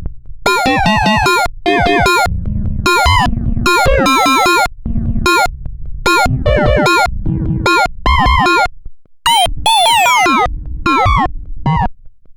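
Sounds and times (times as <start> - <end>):
electronic bleeps: 0.5 - 2.3, 2.9 - 4.7, 5.3 - 5.5, 6.1 - 7.1, 7.7 - 8.7, 9.3 - 11.9.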